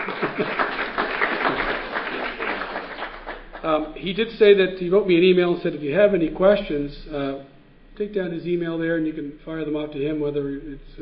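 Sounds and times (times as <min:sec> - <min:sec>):
audience applause after a presentation on crop research: 0:00.0 - 0:03.7
speech: 0:00.4 - 0:00.6, 0:03.7 - 0:11.0.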